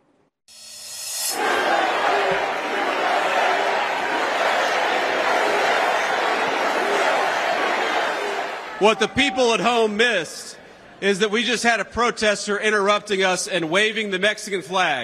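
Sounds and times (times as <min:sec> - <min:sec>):
crowd at the Republican convention in Texas roaring: 0:01.2 - 0:09.8
speech: 0:08.8 - 0:15.0.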